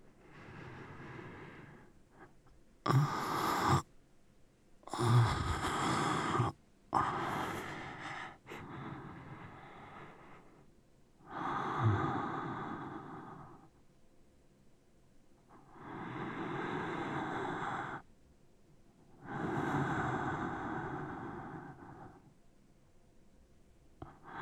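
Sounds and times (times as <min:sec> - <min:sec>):
sleeping breath: 0:00.0 - 0:03.9, 0:04.9 - 0:10.7, 0:11.3 - 0:13.7, 0:15.6 - 0:18.1, 0:19.2 - 0:22.3, 0:24.0 - 0:24.4.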